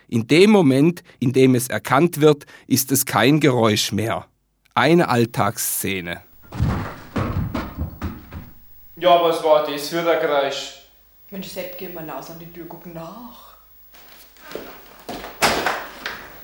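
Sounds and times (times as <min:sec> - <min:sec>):
noise: 0:00.0 - 0:16.4.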